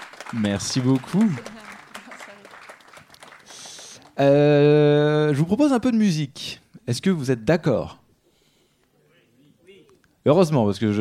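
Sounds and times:
audience applause: 0:00.0 - 0:04.3
speech: 0:00.3 - 0:01.6, 0:04.2 - 0:08.0, 0:10.3 - 0:11.0.

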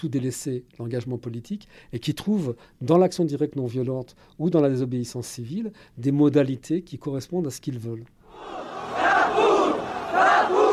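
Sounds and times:
speech: 0:00.0 - 0:08.7
crowd shouting at Bastille storming: 0:08.3 - 0:10.7.

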